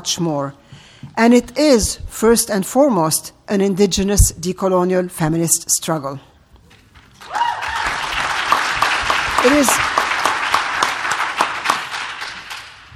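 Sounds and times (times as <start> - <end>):
speech: 0.0 - 6.3, 9.4 - 9.9
audience applause: 7.2 - 12.9.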